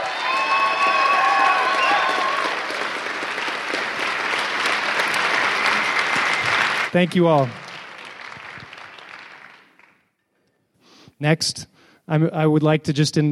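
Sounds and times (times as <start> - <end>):
audience applause: 0.0 - 10.1
speech: 6.9 - 7.6, 11.2 - 13.3.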